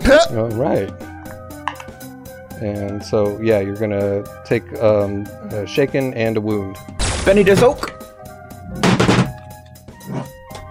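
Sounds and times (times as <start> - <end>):
speech: 0.1 - 1.1, 2.6 - 7.9
loudspeaker knocked over with a rattling thud: 8.8 - 9.4.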